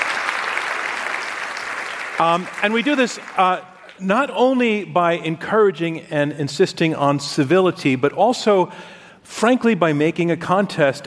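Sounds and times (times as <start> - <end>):
audience applause: 0.0 - 4.0
speech: 2.2 - 11.0.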